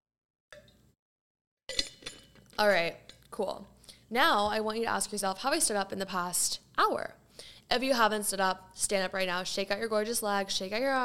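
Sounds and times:
glass clinking: 1.7 - 3.3
speech: 2.6 - 11.0.

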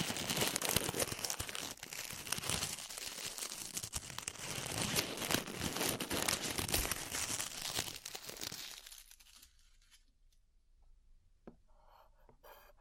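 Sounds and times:
glue being peeled off ears crackling: 0.0 - 10.0.

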